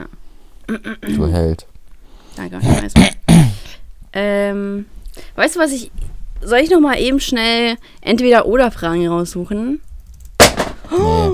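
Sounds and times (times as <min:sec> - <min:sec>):
speech: 0:00.7 - 0:01.7, 0:02.4 - 0:03.2, 0:04.1 - 0:09.9, 0:10.9 - 0:11.3
mobile phone dropping and hitting a hard floor: 0:10.4 - 0:10.9.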